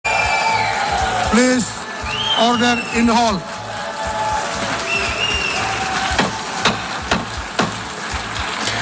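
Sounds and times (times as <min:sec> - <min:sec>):
delegates booing in assembly hall: 0:00.0 - 0:07.6
speech: 0:01.3 - 0:01.8, 0:02.4 - 0:03.5
thin whistles: 0:02.0 - 0:03.2, 0:04.8 - 0:05.7.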